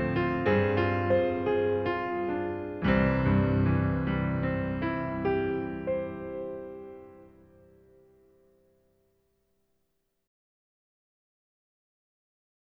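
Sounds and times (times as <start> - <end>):
piano piece: 0.0 - 9.0.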